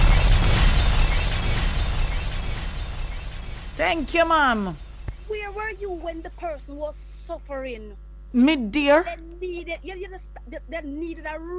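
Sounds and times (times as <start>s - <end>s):
bomb drop sound effect: 0.0s - 6.2s
speech: 3.8s - 11.5s.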